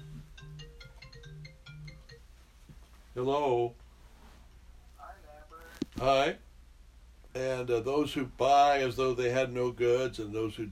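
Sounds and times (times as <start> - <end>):
phone ringtone playing a chiming electronic melody: 0.0 - 2.3
speech: 3.2 - 3.8, 6.0 - 6.4, 7.4 - 10.7.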